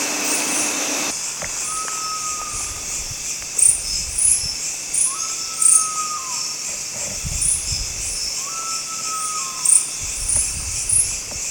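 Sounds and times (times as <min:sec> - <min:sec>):
crickets trilling: 0:00.2 - 0:11.5
Philippine eagle-owl whistled notes: 0:01.5 - 0:06.5, 0:07.3 - 0:11.1.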